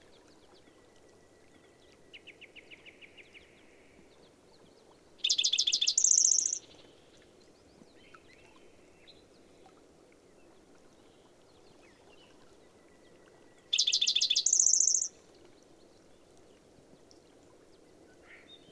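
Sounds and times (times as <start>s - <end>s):
bird song with dense buzzy high trills and a sustained thin whistle: 5.2s - 6.7s, 12.8s - 15.2s.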